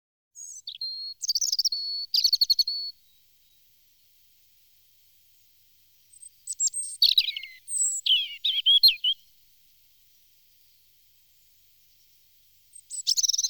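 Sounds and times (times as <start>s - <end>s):
European robin song with whistles and trills: 0.4s - 3.7s, 5.4s - 9.4s, 10.5s - 13.4s.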